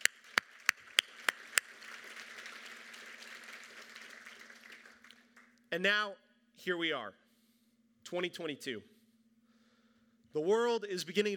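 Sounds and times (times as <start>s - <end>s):
applause for graduating seniors: 0.0s - 5.7s
speech: 5.7s - 7.2s, 8.1s - 8.9s, 10.3s - 11.3s.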